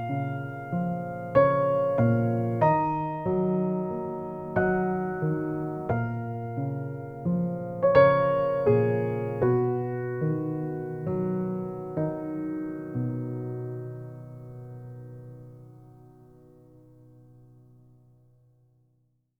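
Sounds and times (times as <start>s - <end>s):
piano prelude: 0.0s - 18.4s.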